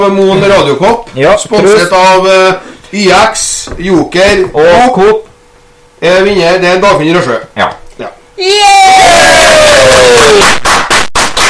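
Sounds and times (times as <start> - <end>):
speech: 0.0 - 5.3, 6.0 - 10.8
crowd cheering and whooping: 8.4 - 10.6
dense applause: 10.0 - 11.4.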